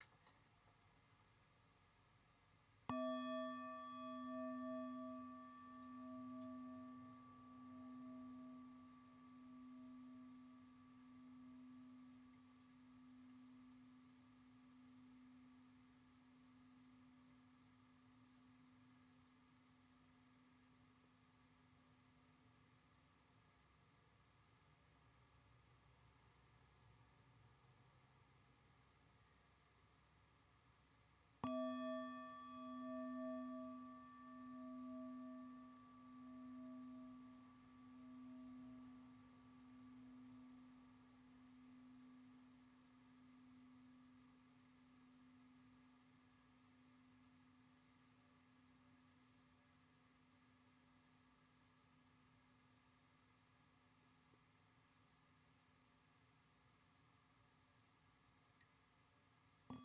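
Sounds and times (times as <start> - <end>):
singing bowl: 2.9 - 20.9, 31.4 - 49.4, 59.7 - 59.8.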